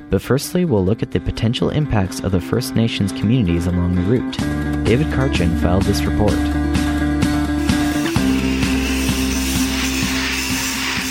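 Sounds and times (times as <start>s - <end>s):
speech: 0.1s - 6.9s
industrial pipe welding for a proposed oil pipeline: 7.6s - 11.0s.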